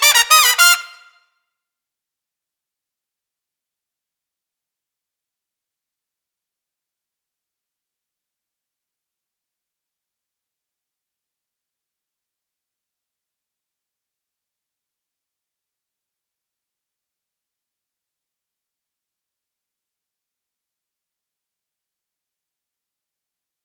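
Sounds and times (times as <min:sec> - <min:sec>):
jazz trumpet: 0:00.0 - 0:01.2.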